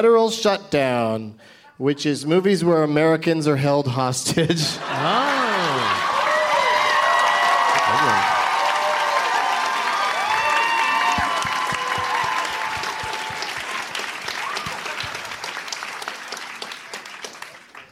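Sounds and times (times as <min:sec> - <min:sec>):
speech: 0:00.0 - 0:06.0
laughter: 0:04.2 - 0:06.3, 0:07.8 - 0:08.3
voices cheering: 0:04.8 - 0:16.2
crowd applauding: 0:04.8 - 0:17.8.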